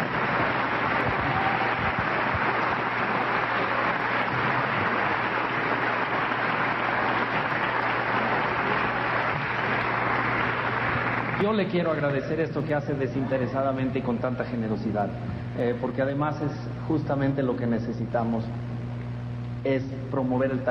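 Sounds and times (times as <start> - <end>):
audience applause: 0.0 - 14.9
speech: 11.4 - 18.7, 19.6 - 20.6.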